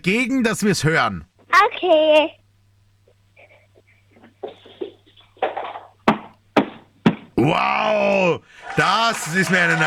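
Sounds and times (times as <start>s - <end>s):
speech: 0.0s - 2.4s, 7.4s - 9.8s
knocking on a door: 6.1s - 7.4s.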